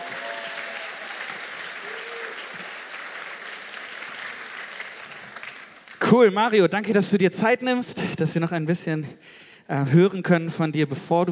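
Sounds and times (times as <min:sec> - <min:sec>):
audience applause: 0:00.0 - 0:06.0
speech: 0:06.1 - 0:11.2.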